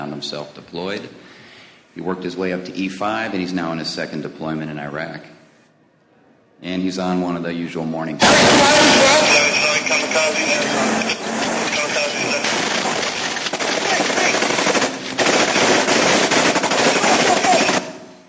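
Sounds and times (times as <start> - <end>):
speech: 0.0 - 1.3, 2.0 - 5.4, 6.6 - 11.4
harsh crackling noise: 8.2 - 18.2
rapid gunfire during an IED attack in Iraq: 8.2 - 18.2.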